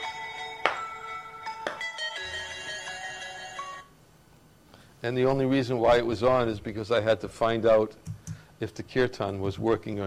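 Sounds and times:
mobile phone ringing with a melodic electronic ringtone: 0:00.0 - 0:03.9
speech: 0:05.0 - 0:10.0.

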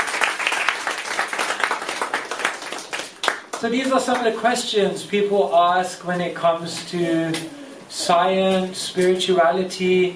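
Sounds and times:
audience applause: 0:00.0 - 0:03.5
speech: 0:03.6 - 0:10.1.

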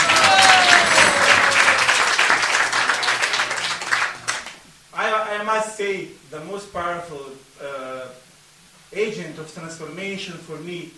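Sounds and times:
audience applause: 0:00.0 - 0:04.6
speech: 0:05.8 - 0:08.2, 0:08.9 - 0:10.9.

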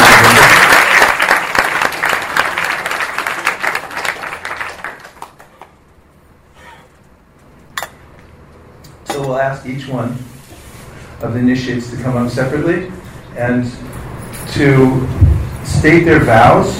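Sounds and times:
audience applause at a spiritual initiation ceremony: 0:00.0 - 0:05.8
speech: 0:09.6 - 0:10.3, 0:11.2 - 0:15.2, 0:15.8 - 0:16.7.

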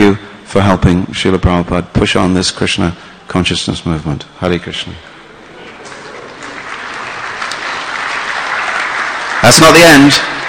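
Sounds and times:
speech: 0:00.1 - 0:05.1, 0:09.4 - 0:10.4
audience applause: 0:05.6 - 0:10.4.

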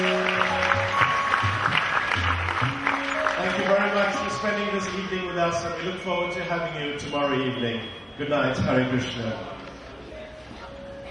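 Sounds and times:
audience applause at a devotional evening concert: 0:00.0 - 0:04.6
speech: 0:04.4 - 0:09.5.

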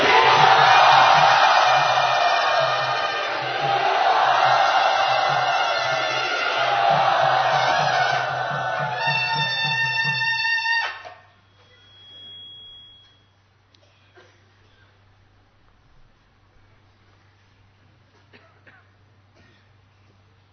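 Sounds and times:
low rhythmic pulse: 0:00.0 - 0:10.4
devotional gathering audience cheering and whooping to welcome a guest: 0:00.0 - 0:11.2.

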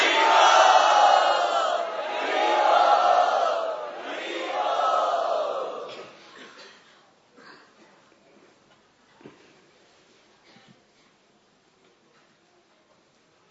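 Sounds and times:
festival crowd loudly chanting: 0:00.0 - 0:06.0.

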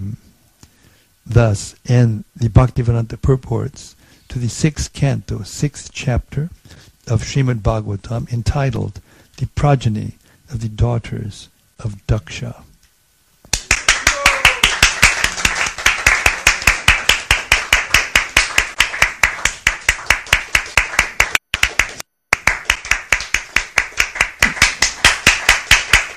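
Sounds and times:
speech: 0:01.4 - 0:12.7
audience clapping: 0:13.5 - 0:26.1.

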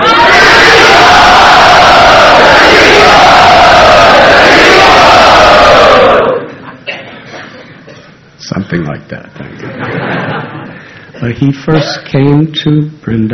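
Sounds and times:
crowd loudly chanting a greeting: 0:00.0 - 0:06.5
laughter: 0:09.4 - 0:11.0
speech: 0:11.3 - 0:13.3.

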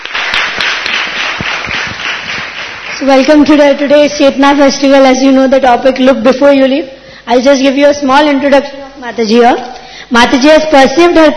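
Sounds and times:
audience applause for actors at a festival event: 0:00.0 - 0:03.4
speech: 0:03.0 - 0:11.3.

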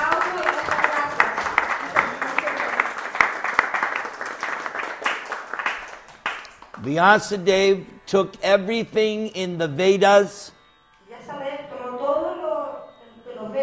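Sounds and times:
group applause: 0:00.0 - 0:07.4
speech: 0:06.8 - 0:10.6.

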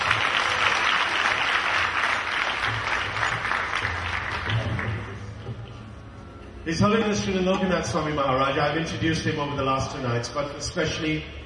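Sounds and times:
audience applause: 0:00.0 - 0:05.3
speech: 0:06.7 - 0:11.4.

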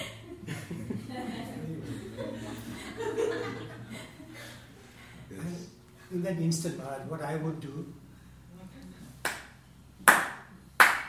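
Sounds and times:
laughter: 0:00.0 - 0:05.3
speech: 0:06.2 - 0:08.0
hands clapping: 0:09.2 - 0:11.0.

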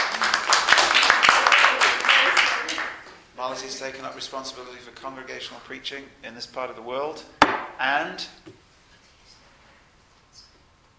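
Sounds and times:
crowd applause: 0:00.0 - 0:03.0
speech: 0:03.5 - 0:08.6.

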